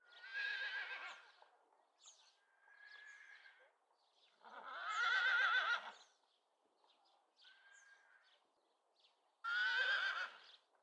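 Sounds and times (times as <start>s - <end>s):
horse whinnying far away: 4.6s - 5.9s, 9.5s - 10.4s.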